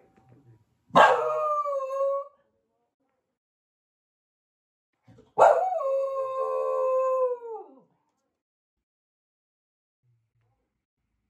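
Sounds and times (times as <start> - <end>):
dog howling: 1.0 - 2.3, 5.4 - 7.8.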